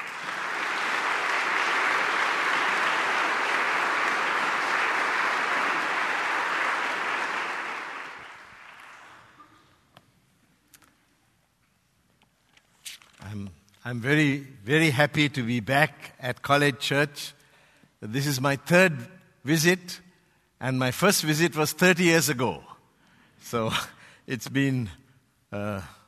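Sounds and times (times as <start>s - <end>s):
church congregation at Cottage Church applauding a guest speaker: 0.0s - 9.6s
speech: 13.9s - 17.4s, 18.0s - 20.0s, 20.6s - 22.7s, 23.4s - 26.0s.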